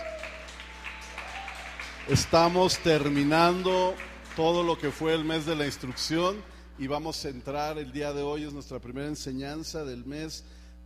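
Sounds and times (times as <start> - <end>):
applause: 0.0 - 7.1
speech: 2.1 - 10.8.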